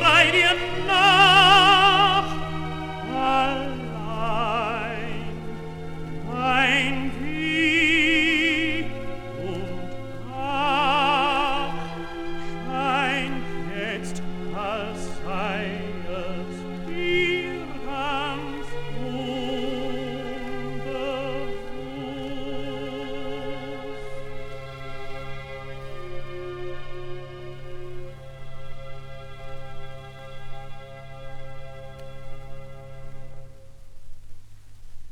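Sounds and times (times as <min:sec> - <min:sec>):
recitative singing: 0:00.0 - 0:26.8.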